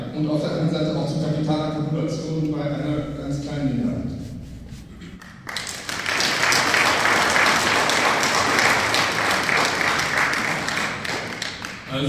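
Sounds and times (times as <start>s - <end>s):
speech: 0.2s - 4.2s
crowd applause: 5.2s - 11.9s.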